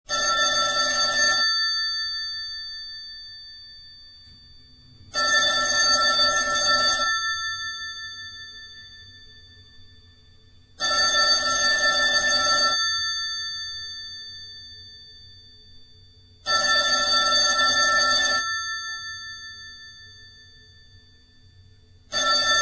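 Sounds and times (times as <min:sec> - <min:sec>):
telephone: 0:00.1 - 0:03.5, 0:05.1 - 0:09.6, 0:10.8 - 0:15.3, 0:16.4 - 0:20.8, 0:22.1 - 0:22.6.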